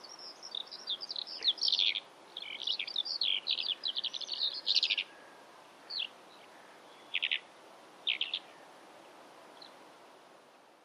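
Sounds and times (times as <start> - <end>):
bird high scratchy chirps: 0.0 - 5.3, 5.9 - 8.7.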